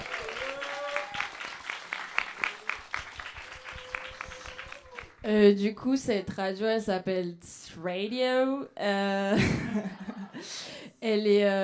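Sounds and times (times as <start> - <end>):
audience applause: 0.0 - 5.3
speech: 5.3 - 10.0, 11.0 - 11.6.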